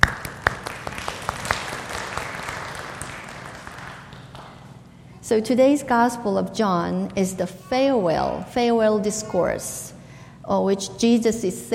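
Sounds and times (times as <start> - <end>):
audience applause: 0.0 - 4.6
speech: 5.3 - 9.9, 10.5 - 11.7.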